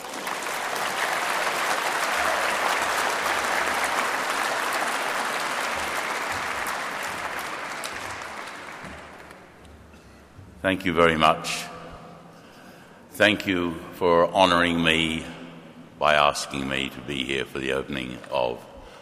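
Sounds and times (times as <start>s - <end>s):
audience applause at an exhibition opening at the National Museum of Australia: 0.0s - 9.6s
speech: 10.6s - 11.7s, 13.2s - 15.4s, 16.0s - 18.7s.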